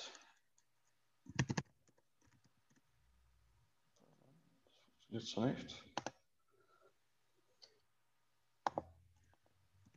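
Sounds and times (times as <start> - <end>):
typing on a computer keyboard: 0.6 - 2.9, 5.9 - 6.3
speech: 5.1 - 6.1.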